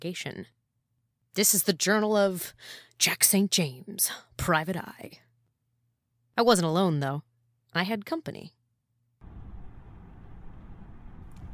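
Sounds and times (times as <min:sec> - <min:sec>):
speech: 0:00.0 - 0:00.6, 0:01.4 - 0:05.2, 0:06.4 - 0:08.6
car road rumble driving near Flagstaff Arizona: 0:09.2 - 0:11.5.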